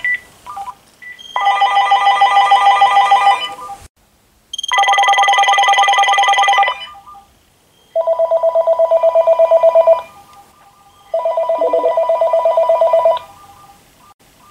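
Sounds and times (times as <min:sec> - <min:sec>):
phones ringing: 0:01.3 - 0:03.6, 0:04.6 - 0:07.0, 0:08.0 - 0:10.2, 0:11.1 - 0:13.7.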